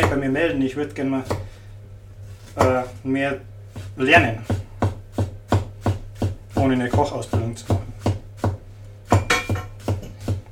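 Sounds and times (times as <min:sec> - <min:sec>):
sharp knife chopping garlic on a board: 0:00.0 - 0:00.3, 0:01.2 - 0:01.6, 0:02.4 - 0:03.0, 0:03.7 - 0:10.5
speech: 0:00.2 - 0:01.5, 0:02.6 - 0:04.6, 0:06.6 - 0:07.8.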